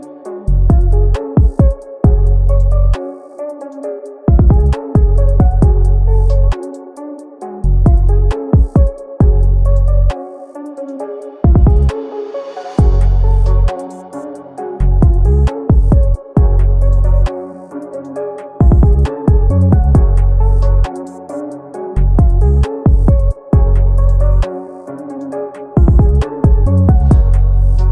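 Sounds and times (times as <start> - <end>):
UK drill trap beat: 0.0 - 12.0, 12.8 - 27.9.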